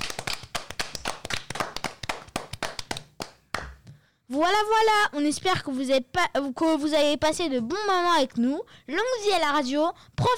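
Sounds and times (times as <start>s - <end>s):
people applauding: 0.0s - 3.7s
speech: 4.3s - 10.3s.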